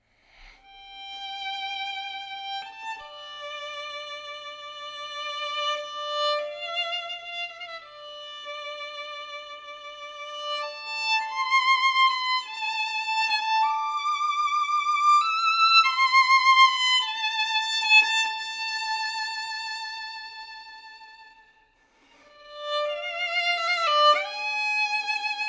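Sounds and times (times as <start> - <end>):
violin: 0.0 - 25.4.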